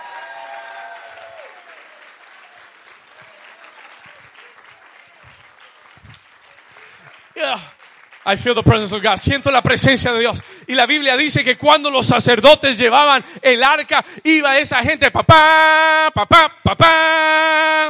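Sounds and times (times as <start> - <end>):
audience applause: 0.0 - 10.6
speech: 7.4 - 17.8.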